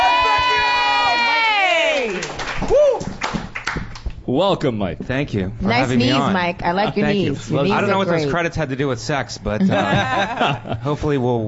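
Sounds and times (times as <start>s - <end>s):
audience cheering and applause for a comedian: 0.0s - 4.2s
speech: 4.3s - 11.4s
laughter: 8.9s - 11.3s.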